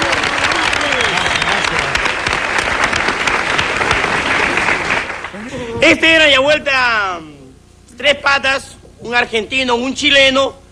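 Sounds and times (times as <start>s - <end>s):
audience applause: 0.0s - 5.8s
speech: 5.8s - 7.2s, 8.0s - 10.6s.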